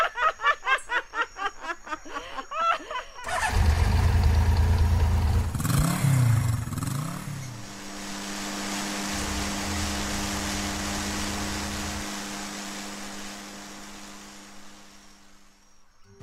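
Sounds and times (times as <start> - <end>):
laughter: 0.0 - 3.3
motorcycle engine starting and running: 3.2 - 15.6.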